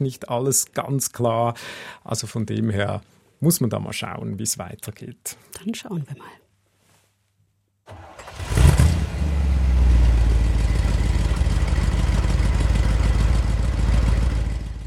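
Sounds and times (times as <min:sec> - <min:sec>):
speech: 0:00.0 - 0:06.4
combustion engine cranking, firing up and revving: 0:07.9 - 0:14.8.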